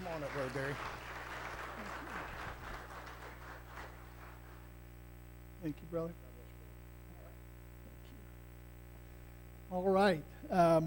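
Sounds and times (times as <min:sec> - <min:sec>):
church audience applauding to welcome a guest speaker: 0:00.0 - 0:04.7
speech: 0:00.2 - 0:01.0, 0:05.6 - 0:06.4, 0:09.7 - 0:10.8.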